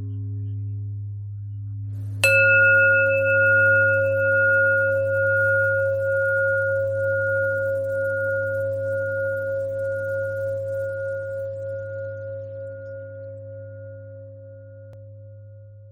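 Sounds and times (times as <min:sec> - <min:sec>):
bells ringing: 0:02.2 - 0:11.3.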